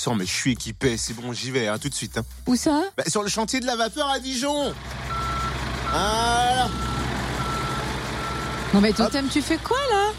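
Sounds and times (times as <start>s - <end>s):
speech: 0.0s - 5.1s, 5.9s - 7.0s, 8.7s - 10.1s
backhoe loader diesel engine rumble: 4.0s - 10.1s
backhoe loader reversing alarm: 5.1s - 9.6s.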